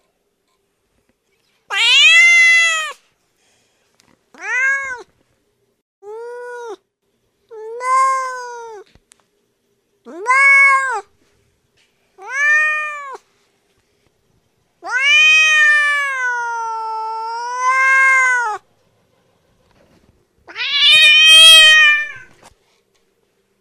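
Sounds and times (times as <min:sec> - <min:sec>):
cat meowing: 0:01.7 - 0:03.0, 0:04.4 - 0:05.1, 0:10.1 - 0:11.1, 0:12.2 - 0:13.2, 0:14.8 - 0:18.6, 0:20.5 - 0:22.4.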